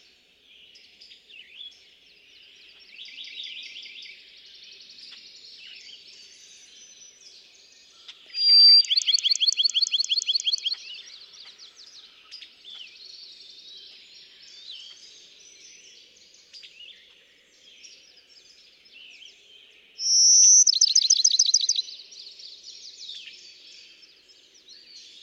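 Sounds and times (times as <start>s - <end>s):
songbird chatter: 8.1s - 14.1s, 20.0s - 21.9s
Bachman's sparrow whistle and trill: 8.3s - 10.8s, 20.0s - 21.9s.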